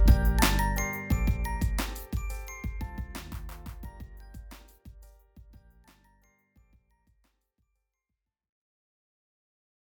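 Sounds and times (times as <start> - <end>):
electro funk music: 0.0 - 5.0.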